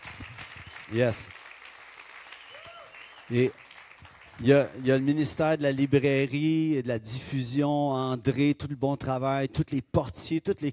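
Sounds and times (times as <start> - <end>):
audience applause: 0.0 - 6.2
speech: 0.9 - 1.4, 3.3 - 3.6, 4.4 - 10.7.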